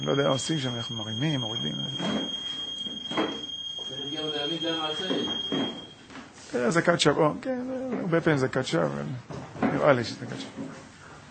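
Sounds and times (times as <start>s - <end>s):
speech: 0.0s - 5.8s, 6.5s - 10.8s
beeping alarm from control box: 0.0s - 6.1s.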